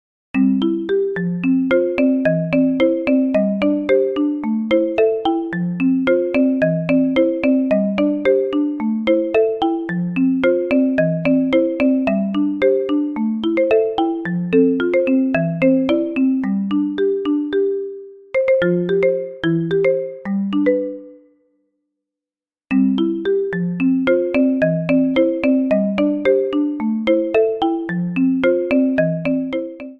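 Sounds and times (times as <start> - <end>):
ringtone: 0.4 - 21.6, 22.7 - 29.9.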